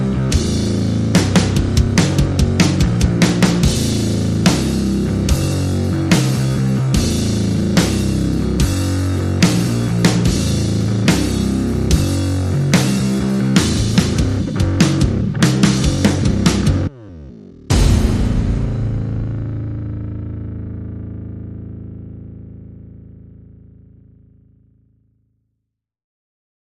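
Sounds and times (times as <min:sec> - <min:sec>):
drums: 0:00.0 - 0:21.2
bass: 0:00.0 - 0:25.3.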